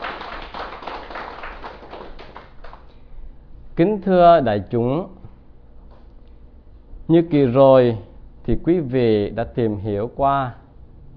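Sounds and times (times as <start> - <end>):
audience applause: 0.0 - 2.9
speech: 3.8 - 5.2, 7.1 - 10.6.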